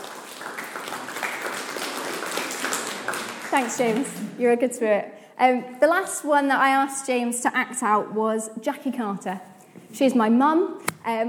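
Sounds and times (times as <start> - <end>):
audience applause: 0.0 - 3.8
speech: 3.5 - 11.2.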